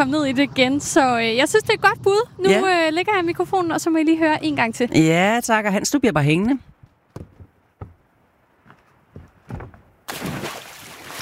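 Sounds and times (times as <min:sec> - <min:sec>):
speech: 0:00.0 - 0:06.7
splash of a person jumping into water: 0:10.1 - 0:11.1.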